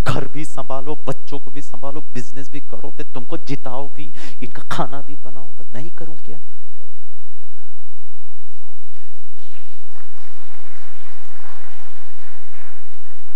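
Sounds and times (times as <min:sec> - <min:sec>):
speech: 0:00.1 - 0:06.9
hands clapping: 0:08.9 - 0:13.3.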